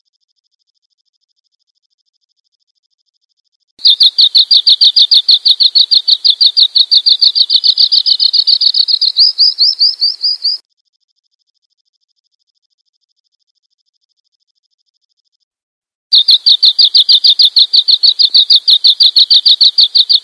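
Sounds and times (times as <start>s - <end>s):
bird chirping: 3.8s - 10.6s, 16.1s - 20.2s.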